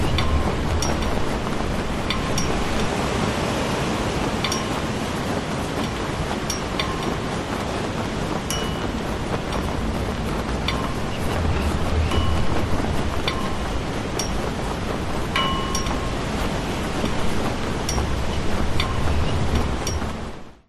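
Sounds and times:
flag blowing in wind: 0.0 - 20.6.

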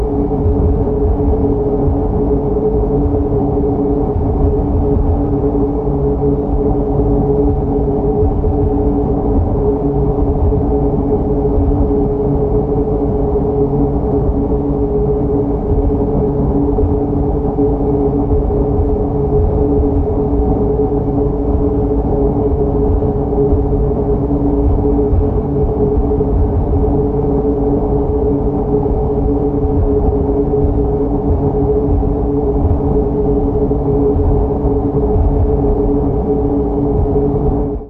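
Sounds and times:
loud science fiction machine whir drone: 0.0 - 37.8.

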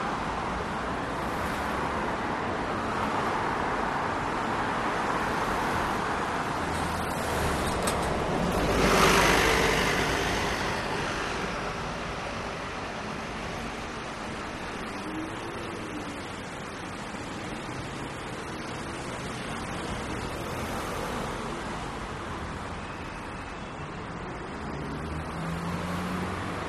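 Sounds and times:
city traffic in Munich Germany: 0.0 - 26.6.

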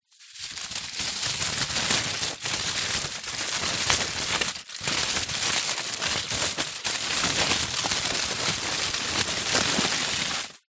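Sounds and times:
household tin foil sheet movement: 0.1 - 10.6.

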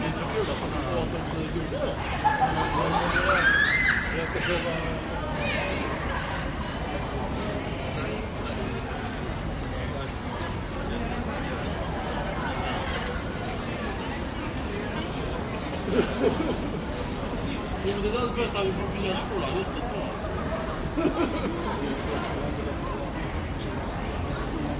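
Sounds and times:
crowd on medium square: 0.0 - 24.7
laughter: 2.0 - 3.4, 15.5 - 17.7, 20.7 - 22.1
kids yelling: 2.8 - 6.1.

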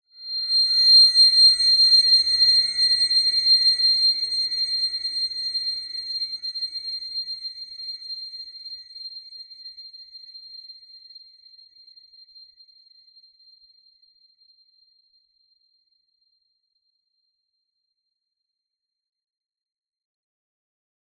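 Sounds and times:
shrill high-pitched horror whine: 0.2 - 7.0.

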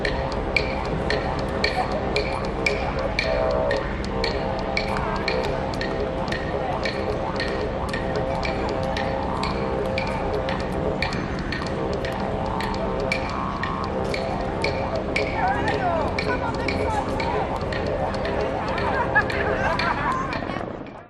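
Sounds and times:
street performers playing didgeridoo: 0.0 - 21.0
street performers playing percussion: 0.0 - 21.0
tourists in city public places: 0.0 - 21.0
laughter: 15.2 - 21.0.

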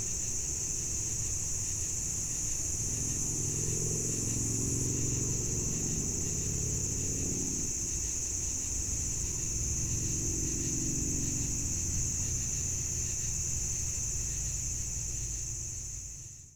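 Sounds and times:
insects in a cornfield on a summer evening in the Midwest US: 0.0 - 16.5.

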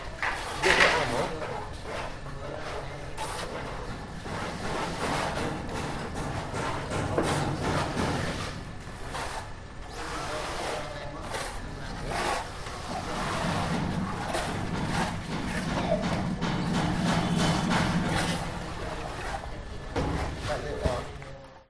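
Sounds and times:
house building construction noise in Cambodia: 0.0 - 21.6.

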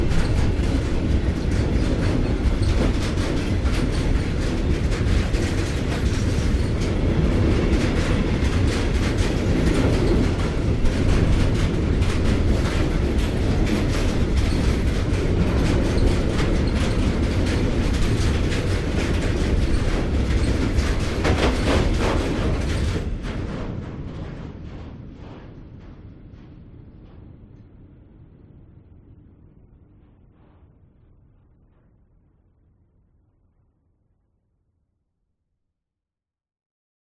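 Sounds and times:
deep rattling freight train: 0.0 - 28.8.

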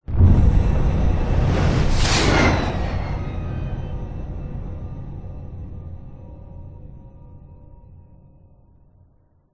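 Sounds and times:
cinematic hit: 0.0 - 6.5
whoosh whizzing by: 0.1 - 5.5.

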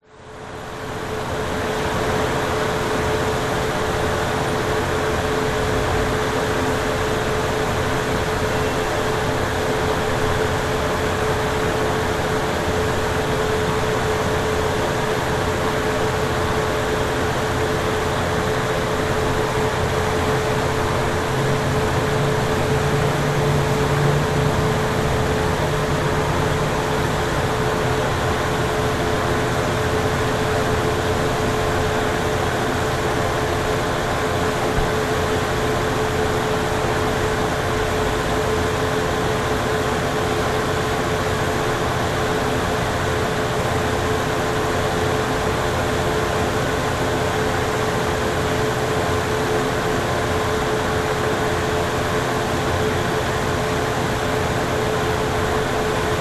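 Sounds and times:
outside ventilation of a restaurant in Laguna Beach USA: 0.0 - 56.1.

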